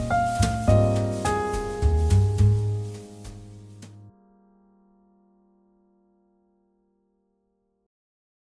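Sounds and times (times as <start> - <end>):
jazz ballad: 0.0 - 4.1.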